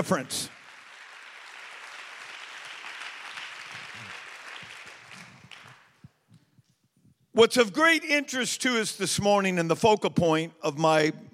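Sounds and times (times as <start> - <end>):
speech: 0.0 - 0.6, 7.4 - 11.3
audience clapping hands: 0.0 - 6.2.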